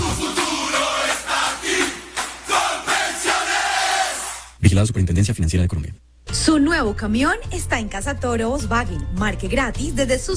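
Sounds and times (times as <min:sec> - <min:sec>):
stadium crowd cheering: 0:00.0 - 0:04.6
speech: 0:04.7 - 0:10.3.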